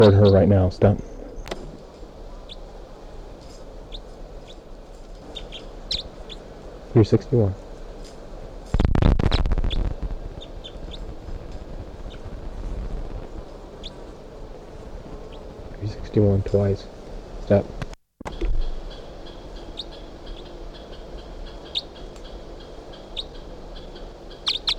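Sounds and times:
speech: 0:00.0 - 0:01.1, 0:06.9 - 0:07.6, 0:16.2 - 0:16.9, 0:17.5 - 0:17.9
bird calling: 0:00.0 - 0:07.8, 0:09.4 - 0:12.4, 0:13.4 - 0:15.7, 0:18.3 - 0:24.7.

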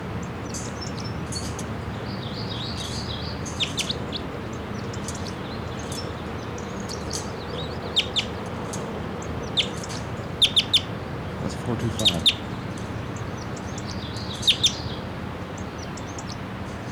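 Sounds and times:
wild bird singing short high chirping song phrases: 0:00.2 - 0:16.9.

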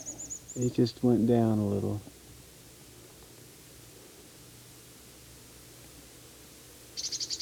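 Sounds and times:
bird giving a type 3 call: 0:00.0 - 0:01.9, 0:07.0 - 0:07.4
faint hiss: 0:00.0 - 0:07.4
speech: 0:00.6 - 0:02.1.

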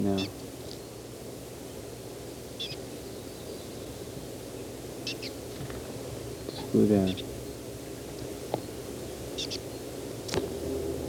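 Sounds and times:
speech: 0:00.0 - 0:00.4, 0:06.7 - 0:07.3
steady low hiss: 0:00.0 - 0:11.0
foraging bird's soft calls: 0:02.5 - 0:05.6, 0:06.3 - 0:07.6, 0:08.6 - 0:10.4.

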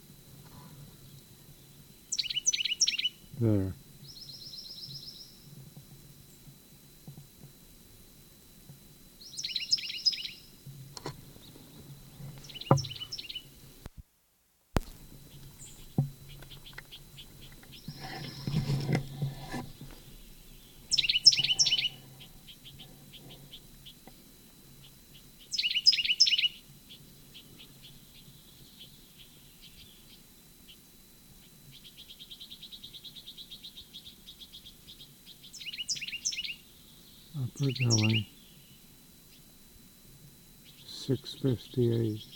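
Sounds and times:
bird song: 0:00.9 - 0:03.4, 0:04.0 - 0:05.5, 0:09.2 - 0:10.6, 0:11.3 - 0:13.6, 0:15.2 - 0:18.8, 0:19.8 - 0:39.6, 0:40.6 - 0:42.3
speech: 0:03.4 - 0:03.8, 0:37.6 - 0:38.3, 0:41.1 - 0:42.3.

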